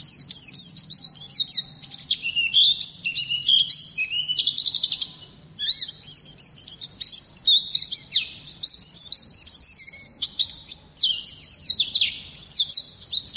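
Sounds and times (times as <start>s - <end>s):
Oriental Magpie-robin singing sharp chirps and slurred whistles: 0.0s - 13.3s.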